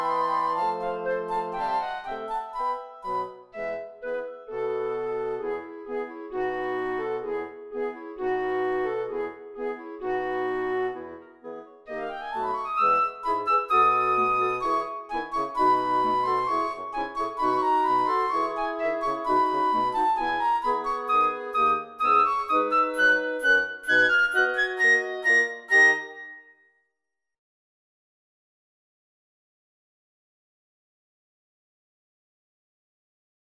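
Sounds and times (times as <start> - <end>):
flute playing: 0.0 - 26.6.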